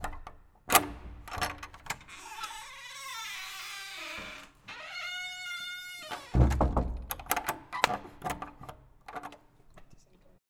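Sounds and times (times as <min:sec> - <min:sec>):
door unlocking: 0:00.0 - 0:09.4.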